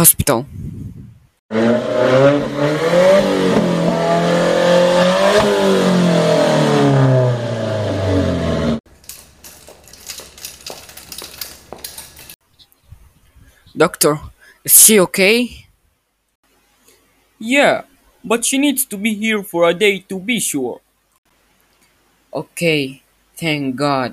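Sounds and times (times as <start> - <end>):
speech: 0.0 - 0.8, 1.5 - 2.6, 13.8 - 15.6, 17.4 - 20.8, 22.3 - 24.1
jet ski engine revving: 1.5 - 8.8
scattered clinks and clatters: 8.9 - 12.4.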